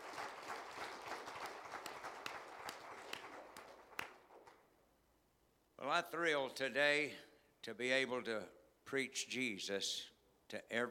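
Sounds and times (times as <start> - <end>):
audience clapping hands: 0.0 - 4.7
speech: 5.9 - 10.8.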